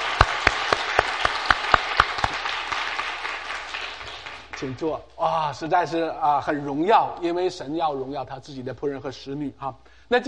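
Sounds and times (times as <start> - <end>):
audience applause: 0.0 - 4.8
speech: 4.6 - 10.2.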